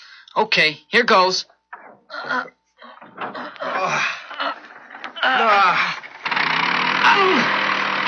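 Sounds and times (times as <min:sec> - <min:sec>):
speech: 0:00.4 - 0:01.5, 0:02.1 - 0:04.2, 0:05.2 - 0:06.0, 0:07.0 - 0:07.6
early airplane motor starting and running: 0:03.0 - 0:08.0.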